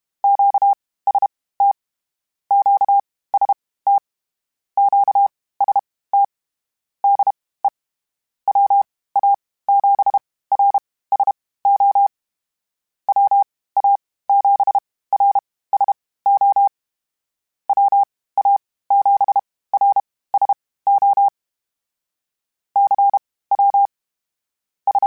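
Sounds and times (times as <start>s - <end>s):
Morse code beeps: 0.2s - 1.8s, 2.5s - 4.0s, 4.8s - 6.3s, 8.5s - 12.1s, 13.1s - 16.7s, 17.7s - 21.3s, 22.8s - 23.9s.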